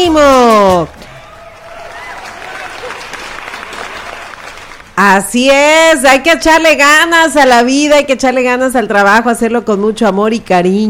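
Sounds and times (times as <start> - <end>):
speech: 0.0 - 1.0, 5.0 - 10.8
crowd applause: 1.0 - 5.0.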